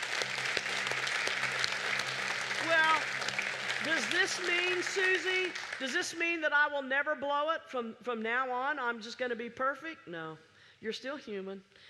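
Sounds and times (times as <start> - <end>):
audience hand clapping: 0.0 - 6.4
speech: 3.8 - 11.8.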